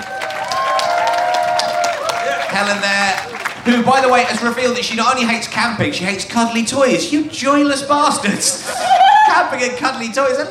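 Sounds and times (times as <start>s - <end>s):
audience applause: 0.0s - 5.5s
speech: 2.6s - 10.4s
laughter: 8.3s - 9.3s.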